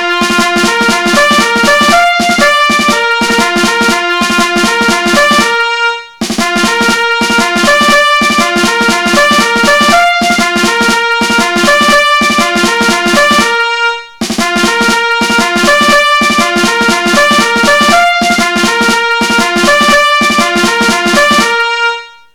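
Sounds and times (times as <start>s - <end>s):
bugle playing a march: 0.0s - 22.1s.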